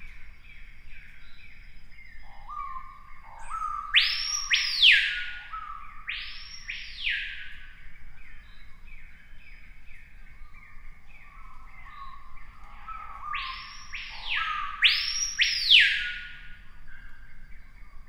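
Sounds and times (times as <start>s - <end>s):
screaming piha piercing whistle with low lead-in notes: 3.9s - 7.5s, 13.0s - 16.4s.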